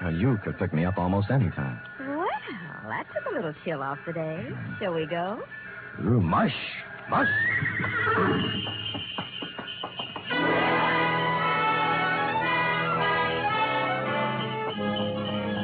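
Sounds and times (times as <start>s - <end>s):
speech: 0.1s - 2.0s, 2.9s - 9.2s
horse-drawn sleigh creaking: 7.1s - 15.6s
horse hooves clopping: 7.5s - 10.8s.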